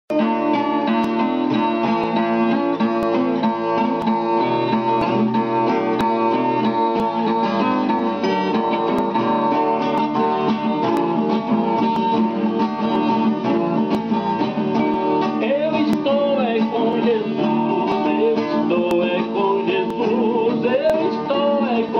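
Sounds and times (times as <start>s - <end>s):
pagode music: 0.1s - 21.9s.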